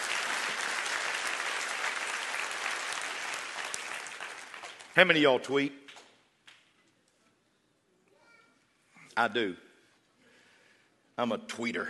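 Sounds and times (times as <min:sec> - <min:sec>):
audience clapping hands: 0:00.0 - 0:06.7
speech: 0:05.0 - 0:05.8, 0:09.2 - 0:09.7, 0:11.2 - 0:11.8.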